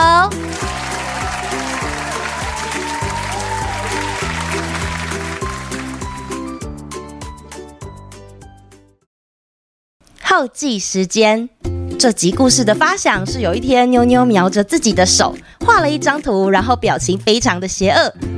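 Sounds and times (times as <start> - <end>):
hands clapping: 0.3 - 6.5
speech: 10.4 - 18.3.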